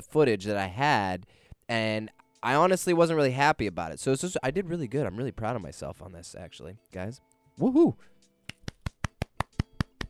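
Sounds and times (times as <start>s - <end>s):
speech: 0.0s - 8.1s
single person clapping: 8.4s - 10.0s.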